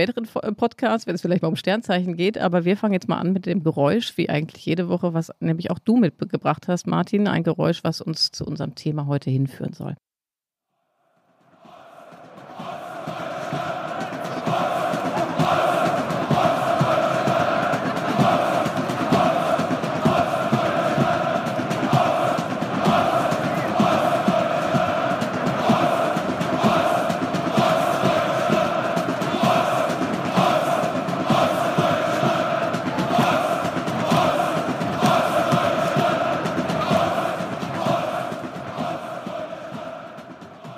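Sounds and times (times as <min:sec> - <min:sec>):
speech: 0:00.0 - 0:10.1
football fans chanting in stadium: 0:11.0 - 0:40.7.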